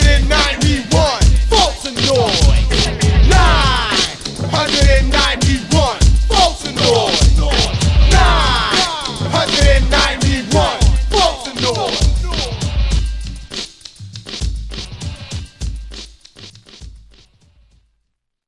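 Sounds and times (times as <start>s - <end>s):
vocal noise: 0.0s - 13.4s.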